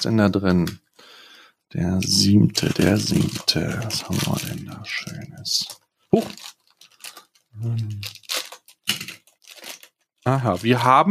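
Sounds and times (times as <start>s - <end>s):
speech: 0.0s - 0.8s, 1.7s - 6.6s, 7.6s - 8.2s, 10.2s - 11.0s
red gift packaging being torn open: 2.0s - 10.8s.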